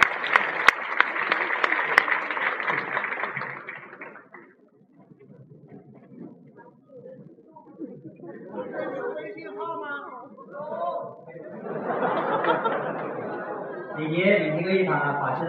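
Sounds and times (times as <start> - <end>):
room full of people applauding: 0.0 - 5.3
murmur and low voices: 0.0 - 15.4
laughter: 6.0 - 14.9.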